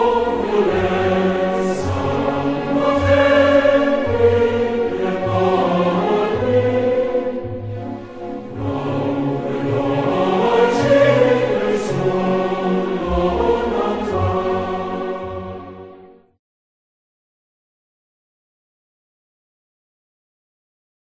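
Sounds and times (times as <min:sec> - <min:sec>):
choir singing: 0:00.0 - 0:16.2.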